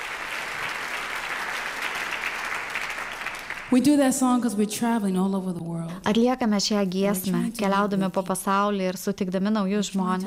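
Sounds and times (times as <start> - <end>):
audience clapping after a song: 0.0 - 4.3
speech: 3.7 - 10.2.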